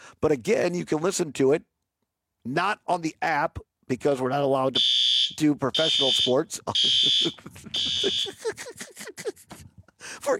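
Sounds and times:
speech: 0.2s - 1.7s, 2.4s - 10.3s
fire alarm going off in studio: 4.8s - 8.4s
laughter: 5.7s - 9.9s.

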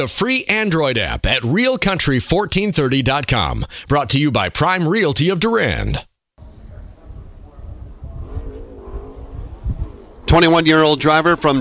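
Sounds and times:
speech: 0.0s - 6.1s, 10.3s - 11.5s
NASCAR race car engines rumbling under caution: 6.7s - 11.5s.

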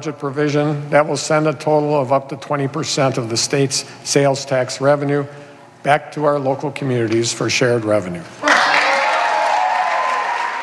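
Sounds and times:
speech: 0.0s - 8.5s
cheers and applause from an audience: 8.4s - 10.6s.

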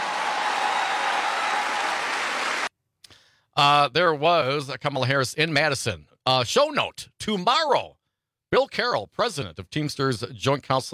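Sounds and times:
crowd cheering and applauding: 0.0s - 2.7s
speech: 3.6s - 10.9s.

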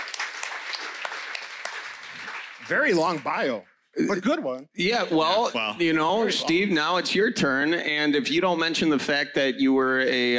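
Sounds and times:
audience applause after a speaker's introduction: 0.0s - 3.6s
speech: 2.7s - 10.3s.

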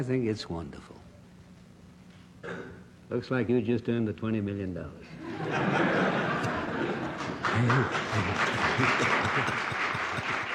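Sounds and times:
speech: 0.0s - 1.0s, 2.4s - 6.2s, 7.5s - 9.8s
laughter: 5.1s - 10.5s
crowd applause in a Senate hearing room: 5.5s - 10.5s.

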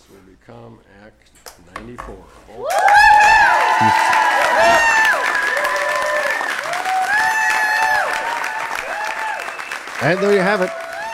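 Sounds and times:
speech: 0.1s - 4.8s, 10.0s - 10.8s
crowd clapping: 2.6s - 11.1s.

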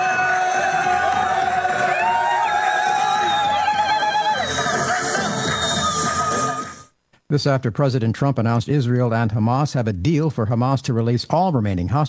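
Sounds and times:
crowd cheering in Khan Yunis: 0.0s - 6.9s
speech: 7.3s - 12.0s.

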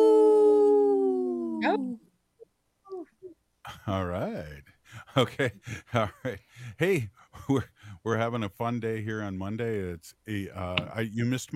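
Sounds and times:
person imitating a wolf howl: 0.0s - 2.0s
speech: 3.9s - 11.5s.

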